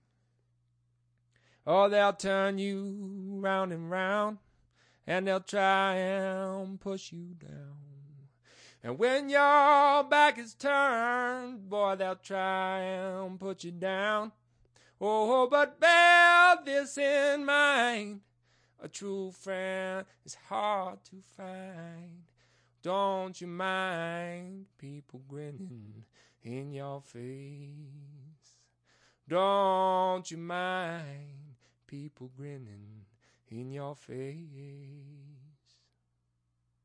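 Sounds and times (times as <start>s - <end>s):
a cappella blues singing: 1.6s - 18.2s, 18.8s - 28.6s, 29.3s - 35.9s.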